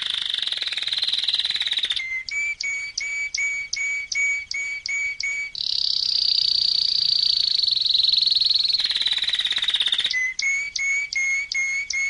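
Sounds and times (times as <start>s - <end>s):
canary singing trills and whistled notes: 0.0s - 12.0s.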